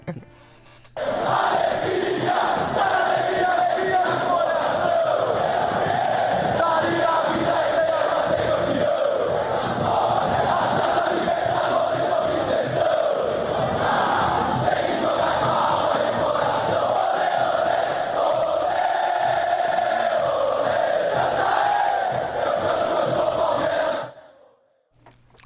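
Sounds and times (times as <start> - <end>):
laughter: 0.0 - 0.5
football supporters chanting in unison in stadium stands: 1.0 - 24.7.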